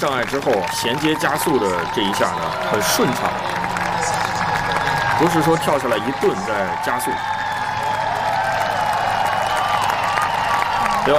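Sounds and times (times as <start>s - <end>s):
speech: 0.0s - 3.8s, 5.2s - 7.4s
spectators cheering at equestrian event: 0.0s - 11.1s.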